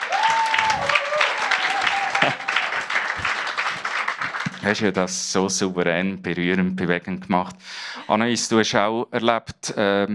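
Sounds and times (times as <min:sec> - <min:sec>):
audience applause: 0:00.0 - 0:04.9
speech: 0:04.6 - 0:10.1.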